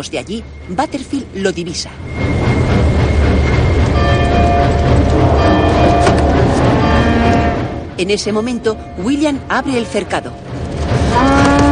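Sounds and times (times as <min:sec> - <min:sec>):
speech: 0:00.0 - 0:03.4, 0:08.0 - 0:10.5
locomotive slowing as a train approaches a station: 0:00.0 - 0:11.6
high thin metallic squealing: 0:00.5 - 0:07.9.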